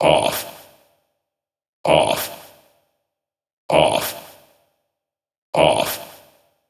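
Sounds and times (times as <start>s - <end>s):
techno vocal loop: 0.0s - 0.8s, 1.8s - 2.6s, 3.7s - 4.5s, 5.6s - 6.4s.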